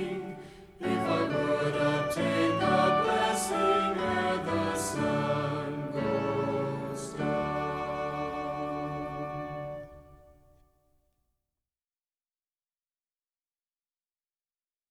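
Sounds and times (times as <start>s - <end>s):
hymn with voices and instruments: 0.0s - 10.4s.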